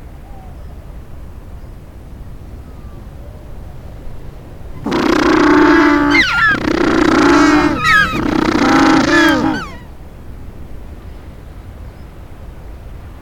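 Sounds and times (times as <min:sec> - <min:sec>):
penguin braying: 0:04.8 - 0:09.8.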